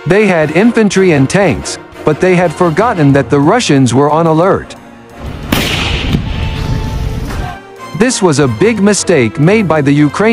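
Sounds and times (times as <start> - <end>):
speech: 0.0 - 4.8, 8.0 - 10.3
artillery and mortar shells exploding: 5.3 - 7.0.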